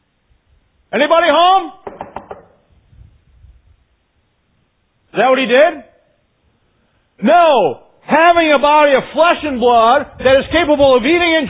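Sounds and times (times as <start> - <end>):
speech: 0.9 - 1.8, 5.2 - 5.9, 7.2 - 11.4
knocking on a door: 1.8 - 2.6.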